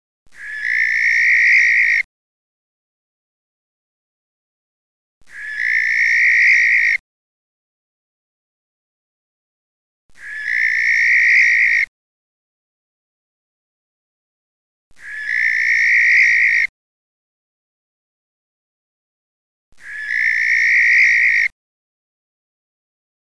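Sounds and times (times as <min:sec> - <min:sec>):
male barn owl harsh breathy screech: 0:00.3 - 0:02.1, 0:05.3 - 0:07.0, 0:10.2 - 0:11.9, 0:15.0 - 0:16.7, 0:19.8 - 0:21.5.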